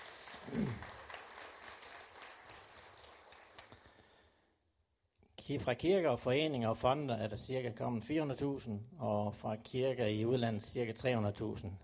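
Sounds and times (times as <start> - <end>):
audience applause: 0.0 - 3.8
speech: 5.5 - 11.8.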